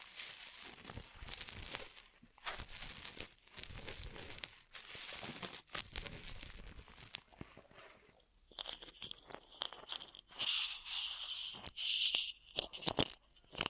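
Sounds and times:
crisp scratchy strokes: 0.0 - 6.8, 8.9 - 12.8
ear massage crinkling and rubbing: 0.0 - 13.6.

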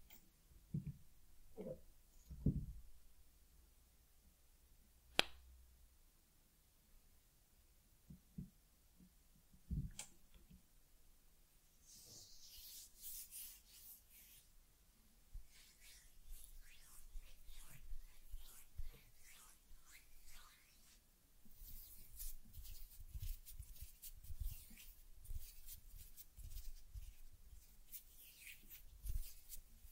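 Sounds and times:
soft thumps and taps: 0.7 - 2.8
teddy being brushed: 11.7 - 14.6, 15.3 - 29.9.

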